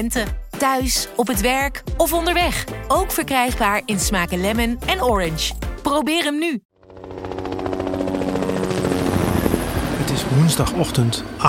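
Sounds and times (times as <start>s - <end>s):
speech: 0.0s - 6.7s, 10.2s - 11.4s
Lifeliner 1 trauma helicopter taking off from VU Medical Center in Amsterdam: 6.8s - 11.4s.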